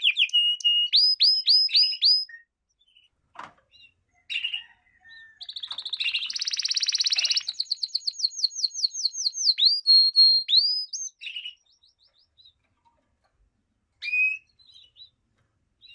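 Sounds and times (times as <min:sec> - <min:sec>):
canary singing: 0:00.0 - 0:03.1, 0:03.7 - 0:12.6.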